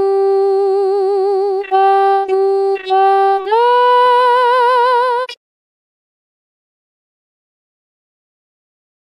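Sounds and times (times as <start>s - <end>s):
soprano singing: 0.0s - 5.4s.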